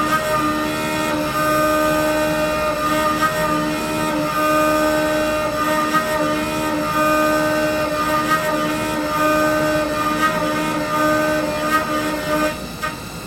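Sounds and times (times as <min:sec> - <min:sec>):
lathe running: 0:00.0 - 0:13.2.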